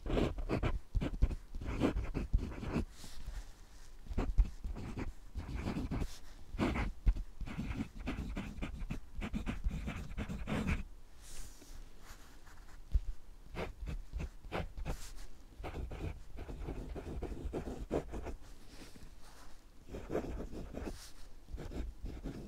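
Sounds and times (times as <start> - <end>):
pen writing on paper: 0.1 - 2.8, 4.1 - 10.8, 13.5 - 15.0, 15.6 - 18.4, 19.9 - 22.4.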